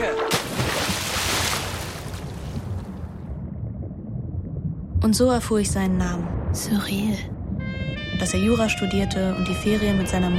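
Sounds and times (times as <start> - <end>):
water splashing around a capsized small sailboat: 0.0 - 10.3
speech: 5.0 - 7.4, 8.2 - 10.3.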